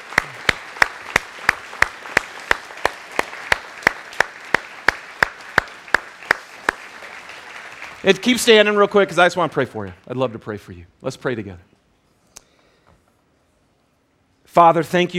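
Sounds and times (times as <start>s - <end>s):
round of applause: 0.0s - 10.0s
speech: 8.0s - 11.7s, 14.6s - 15.1s.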